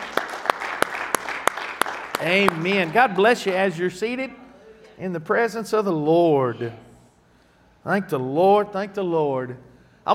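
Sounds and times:
audience clapping: 0.0 - 3.8
speech: 2.2 - 4.4, 5.0 - 6.9, 7.8 - 10.1.

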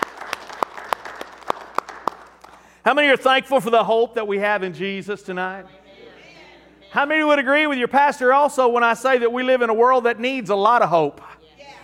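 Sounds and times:
audience clapping hands: 0.0 - 2.8
speech: 2.8 - 5.8, 6.9 - 11.3.

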